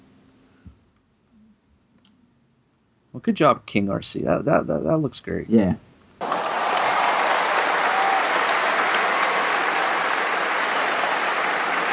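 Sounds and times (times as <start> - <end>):
speech: 3.2 - 5.9
applause: 6.2 - 11.9.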